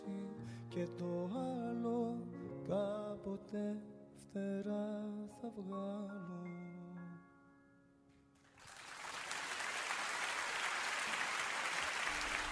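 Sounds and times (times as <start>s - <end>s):
speech: 0.8s - 6.6s
audience applause: 8.4s - 12.5s.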